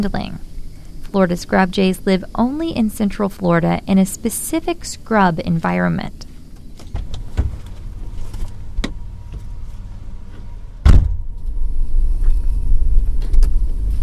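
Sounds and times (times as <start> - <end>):
speech: 0.0 - 0.5, 1.1 - 6.2
roller chopper machine operating: 7.1 - 14.0.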